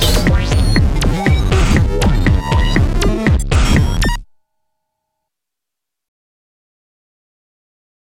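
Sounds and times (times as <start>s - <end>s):
Roland SH32 synthesizer spank sound: 0.0s - 4.3s.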